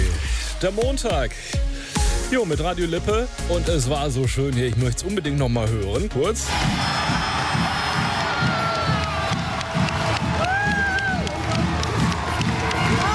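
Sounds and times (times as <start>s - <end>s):
speech: 0.6s - 1.7s, 2.3s - 7.0s
crowd cheering as HSG Blomberg-Lippe win the German championship: 6.5s - 13.1s.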